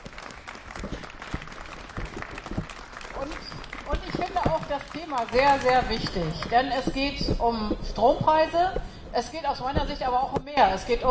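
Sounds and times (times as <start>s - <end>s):
applause: 0.0s - 6.4s
speech: 4.6s - 11.0s.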